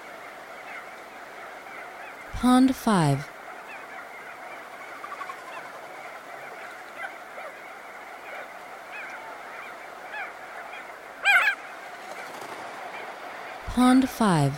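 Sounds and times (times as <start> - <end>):
crested auklet colony honking: 0.0 - 2.3, 3.2 - 13.7
speech: 2.4 - 3.3, 13.8 - 14.5
crested auklet harsh nasal call: 3.6 - 13.7.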